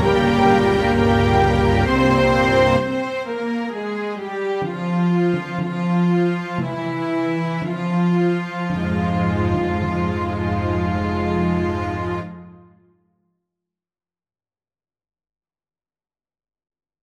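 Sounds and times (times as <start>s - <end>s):
lament music: 0.0s - 12.8s.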